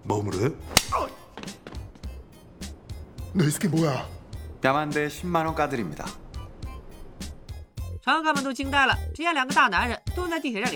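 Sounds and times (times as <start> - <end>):
speech: 0.0 - 1.1, 3.4 - 6.2, 8.0 - 10.7
slaps across the face: 0.7 - 1.6.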